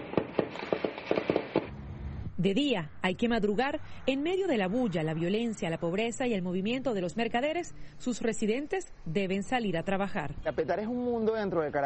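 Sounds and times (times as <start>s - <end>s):
gunshots at night: 0.0s - 1.8s
speech: 2.4s - 11.8s.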